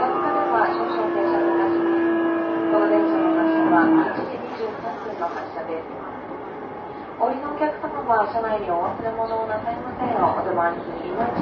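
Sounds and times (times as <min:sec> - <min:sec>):
steady pitched tone: 0:00.0 - 0:04.3
JR East E233 series train rolling from Yokohama to Odawara: 0:00.0 - 0:11.4.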